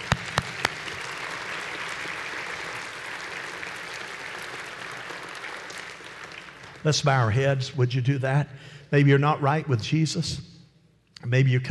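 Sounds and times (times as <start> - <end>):
crowd applause: 0.0 - 7.0
speech: 6.8 - 10.5, 11.3 - 11.6.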